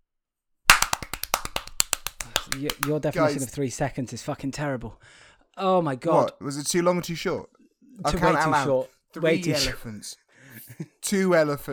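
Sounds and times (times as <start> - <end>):
applause: 0.7 - 3.4
speech: 2.5 - 11.7.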